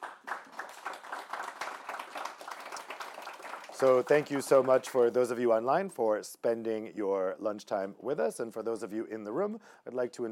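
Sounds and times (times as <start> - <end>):
audience applause for panelists: 0.0 - 5.0
speech: 3.8 - 10.2.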